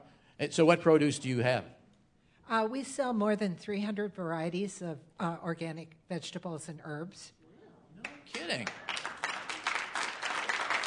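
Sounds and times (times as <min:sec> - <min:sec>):
speech: 0:00.4 - 0:01.8, 0:02.5 - 0:07.4, 0:08.3 - 0:08.9
audience applause: 0:08.0 - 0:10.8.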